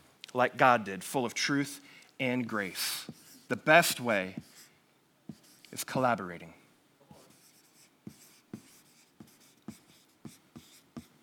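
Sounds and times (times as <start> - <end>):
speech: 0.4 - 4.5, 5.7 - 6.6
marker writing on a board: 2.7 - 4.7, 5.3 - 5.9, 7.2 - 11.2.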